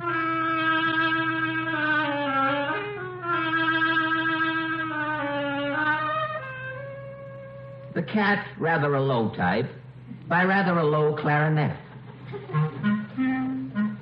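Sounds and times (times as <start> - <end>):
oboe playing a melody: 0.0 - 8.1, 12.3 - 14.0
speech: 8.0 - 11.8.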